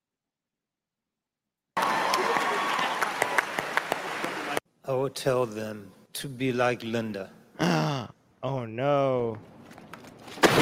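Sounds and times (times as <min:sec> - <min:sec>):
clapping: 0:01.8 - 0:04.6
speech: 0:04.9 - 0:09.5.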